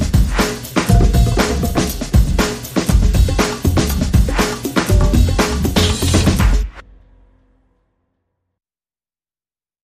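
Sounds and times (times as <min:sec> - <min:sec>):
bass: 0:00.0 - 0:06.9
drums: 0:00.0 - 0:06.9.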